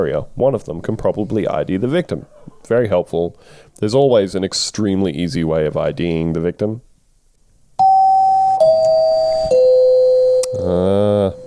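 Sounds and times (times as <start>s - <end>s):
speech: 0.0s - 6.9s, 10.6s - 11.1s
doorbell-style chime used as a timer: 7.8s - 11.4s.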